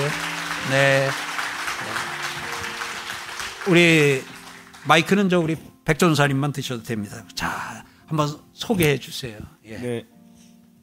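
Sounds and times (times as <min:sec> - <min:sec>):
audience applause: 0:00.0 - 0:05.4
speech: 0:00.7 - 0:02.1, 0:03.6 - 0:10.1.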